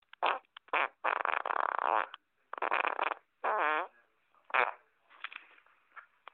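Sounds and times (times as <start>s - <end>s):
raspy fart: 0.1s - 4.8s.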